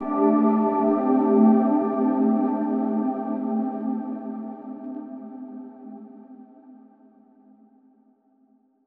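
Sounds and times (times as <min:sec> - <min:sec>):
mellow music texture in A minor: 0:00.0 - 0:06.3.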